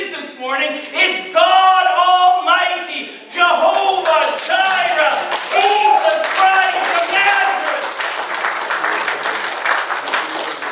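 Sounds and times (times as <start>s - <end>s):
speech: 0.4s - 3.6s
child clapping: 4.0s - 10.6s.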